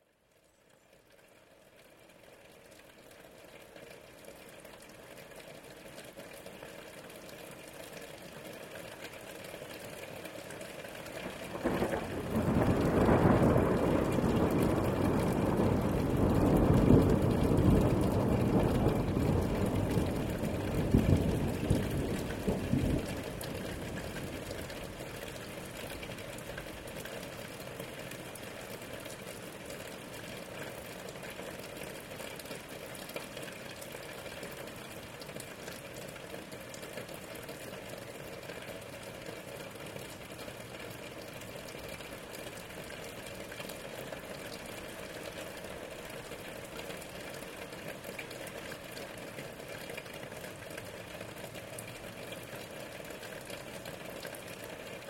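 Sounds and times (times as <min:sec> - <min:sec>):
rain: 0:00.0 - 0:55.0
thunder: 0:11.2 - 0:24.8.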